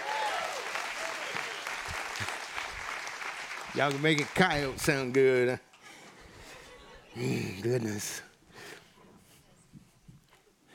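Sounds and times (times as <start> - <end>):
audience applause: 0.0 - 5.5
speech: 3.8 - 5.7, 7.2 - 8.3.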